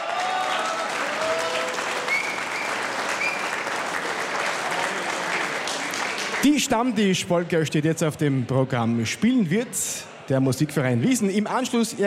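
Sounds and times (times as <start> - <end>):
audience applause for a folk dance band: 0.0 - 6.9
speech: 6.4 - 12.0.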